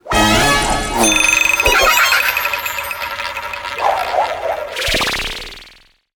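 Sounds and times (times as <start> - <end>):
level up jingle: 0.1 - 4.8.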